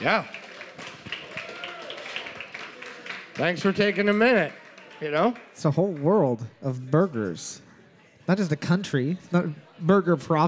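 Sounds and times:
speech: 0.0s - 0.4s, 3.4s - 7.6s, 8.3s - 10.4s
audience applause: 0.0s - 6.3s
murmur of crowd voices: 0.0s - 10.4s.

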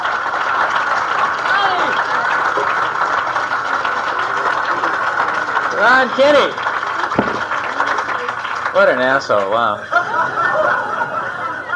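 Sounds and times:
comedy club audience in Sacramento applauding and cheering: 0.0s - 9.2s
speech: 5.8s - 6.6s, 8.8s - 9.9s
laughter: 9.6s - 11.7s.

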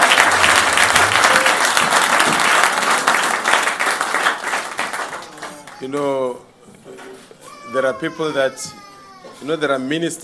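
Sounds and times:
crowd applauding: 0.0s - 6.1s
speech: 5.8s - 6.5s, 7.7s - 8.8s, 9.4s - 10.2s.

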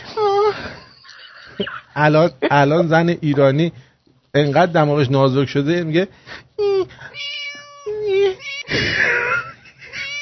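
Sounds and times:
speech: 1.6s - 3.8s, 4.4s - 7.1s
person's voice imitating a cat meowing: 6.7s - 8.7s.

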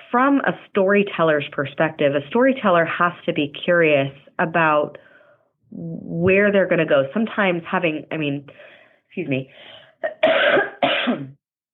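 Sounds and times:
speech: 0.1s - 5.1s, 5.7s - 11.4s
person coughing from a tickle in the throat: 10.0s - 11.4s.

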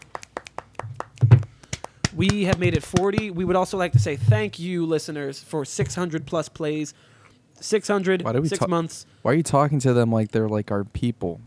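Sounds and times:
small finger-clapping applause: 0.0s - 3.4s
speech: 2.2s - 11.4s.

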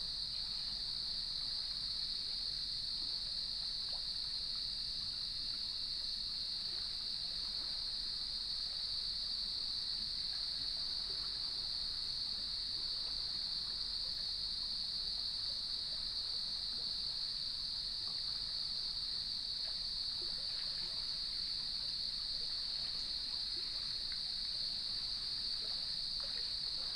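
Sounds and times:
crickets trilling: 0.0s - 26.9s.

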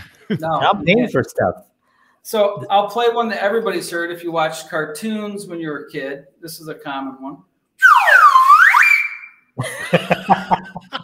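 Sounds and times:
speech: 0.3s - 8.4s, 9.6s - 11.0s
slide whistle sound effect: 7.8s - 9.5s
laughter: 9.6s - 11.0s.

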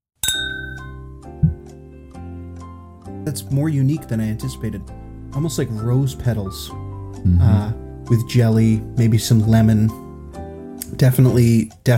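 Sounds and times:
glasses clinking in a toast: 0.2s - 1.0s
speech: 3.2s - 10.0s, 10.9s - 11.9s.

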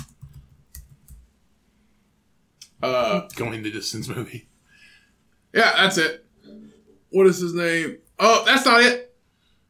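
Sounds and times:
typing on a computer keyboard: 0.0s - 1.3s
speech: 2.8s - 4.5s, 5.5s - 6.2s, 7.1s - 9.1s.

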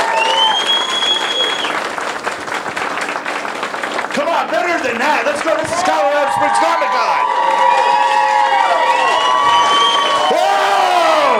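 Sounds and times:
faint cheers: 0.0s - 1.7s, 5.5s - 11.3s
crowd applauding: 0.0s - 11.3s
sharp whistle: 0.1s - 1.8s, 9.1s - 10.2s
speech: 4.8s - 7.3s.

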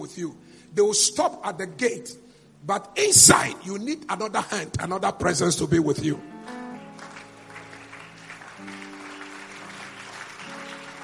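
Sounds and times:
speech: 0.1s - 6.6s
audience clapping: 6.5s - 11.0s.

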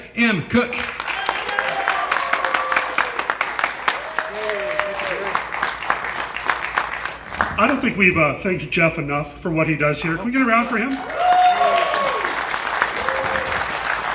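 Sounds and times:
speech: 0.2s - 0.9s, 7.6s - 11.2s
audience applause: 0.7s - 7.9s, 10.9s - 14.1s.

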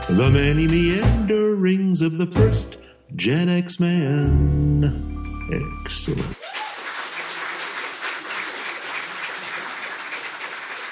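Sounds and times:
speech: 0.1s - 6.4s
canned applause from a fake audience: 6.3s - 10.9s.

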